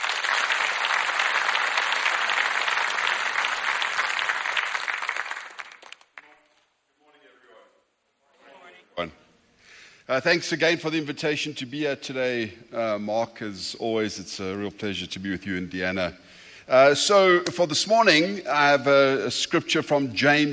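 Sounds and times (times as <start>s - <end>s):
church gathering audience applauding a bishop and his wife: 0.0s - 6.4s
speech: 9.0s - 9.2s, 10.1s - 20.5s.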